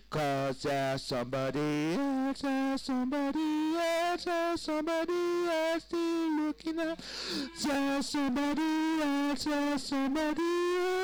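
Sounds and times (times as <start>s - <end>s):
full backing vocals on choruses: 0.1s - 11.0s.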